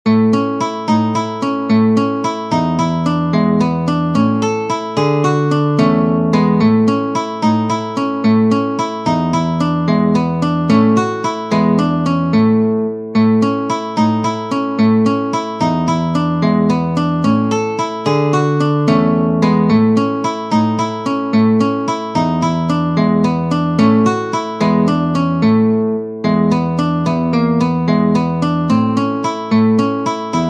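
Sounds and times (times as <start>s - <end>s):
waltz on guitar: 0.1s - 30.4s.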